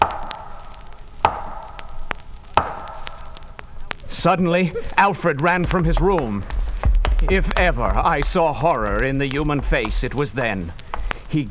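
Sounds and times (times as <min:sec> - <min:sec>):
slow loud knocks at the head of a bed: 0:00.0 - 0:03.4, 0:05.6 - 0:10.2
speech: 0:04.2 - 0:06.5, 0:07.2 - 0:11.4.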